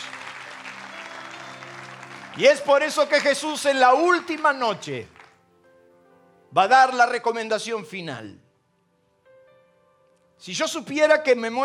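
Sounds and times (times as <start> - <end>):
audience applauding: 0.0 - 5.4
speech: 2.4 - 5.1, 6.5 - 8.4, 10.4 - 11.6.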